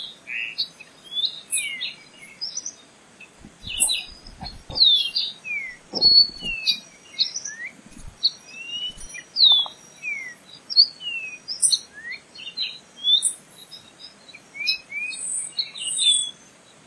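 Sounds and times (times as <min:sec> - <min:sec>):
Moriche Oriole whistled song: 0:03.6 - 0:16.4.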